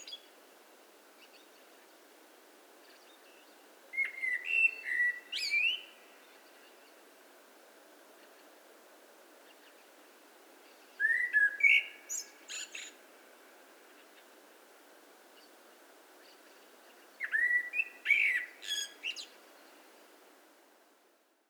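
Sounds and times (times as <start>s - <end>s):
hiss: 0.0s - 21.4s
Common blackbird song: 2.8s - 7.0s, 10.7s - 13.0s, 16.2s - 19.8s.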